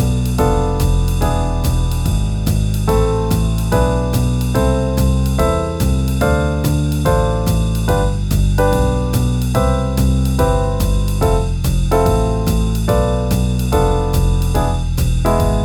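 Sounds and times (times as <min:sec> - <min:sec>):
backing track in C major at 144 bpm: 0:00.0 - 0:15.6.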